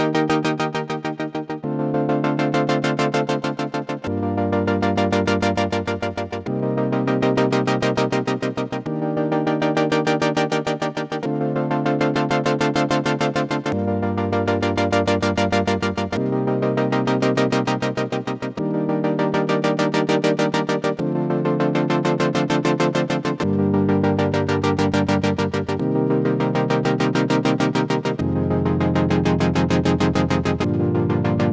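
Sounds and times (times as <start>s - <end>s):
synthesizer filter modulation: 0.0s - 31.5s.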